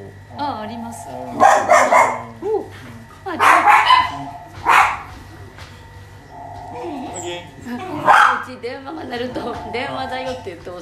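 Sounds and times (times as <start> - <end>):
speech: 0.3 - 4.4, 8.5 - 10.8
small dog barking: 1.3 - 2.4, 3.3 - 5.2, 8.0 - 8.5.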